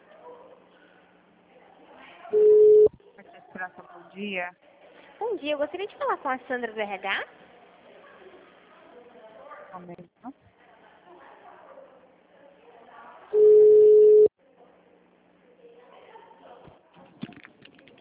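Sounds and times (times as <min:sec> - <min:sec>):
telephone busy tone on a dropped call: 0:02.4 - 0:02.9, 0:13.4 - 0:14.3
speech: 0:03.6 - 0:07.4, 0:09.7 - 0:10.4.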